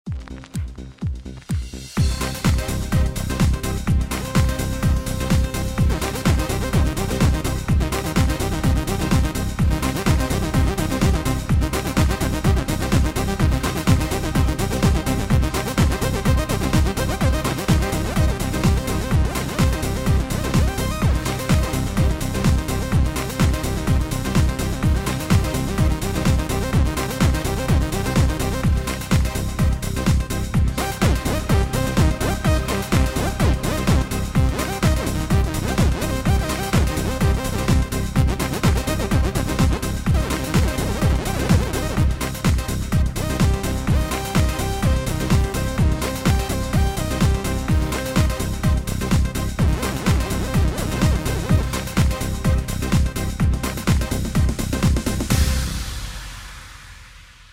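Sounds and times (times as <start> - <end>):
Korg Pa5x KAOSS keyboard: 0.0 - 55.7.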